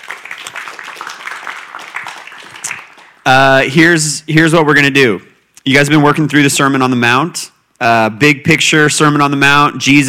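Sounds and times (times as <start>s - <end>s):
audience clapping for a reader: 0.0s - 3.3s
speech: 3.3s - 10.0s.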